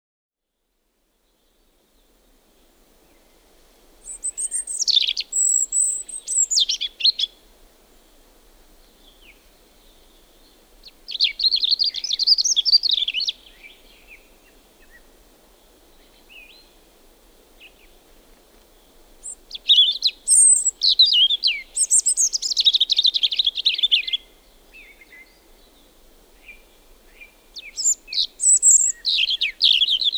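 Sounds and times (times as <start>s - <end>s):
European robin singing: 4.0s - 7.4s, 9.0s - 15.0s, 18.8s - 30.1s.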